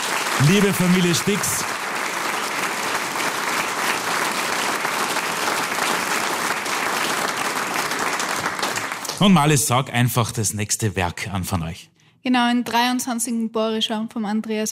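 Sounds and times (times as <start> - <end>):
audience applause: 0.0 - 9.8
speech: 0.4 - 1.7, 9.2 - 14.6.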